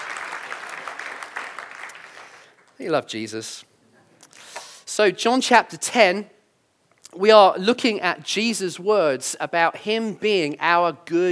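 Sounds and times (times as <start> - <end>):
crowd applauding in a large room: 0.0 - 2.8
speech: 2.8 - 3.7, 5.0 - 6.4, 7.1 - 11.3.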